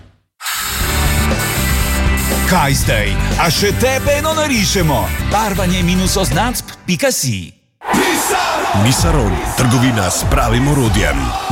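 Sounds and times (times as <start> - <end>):
drill bit drilling into concrete: 0.4 - 2.5
speech: 2.5 - 7.6, 8.3 - 11.5.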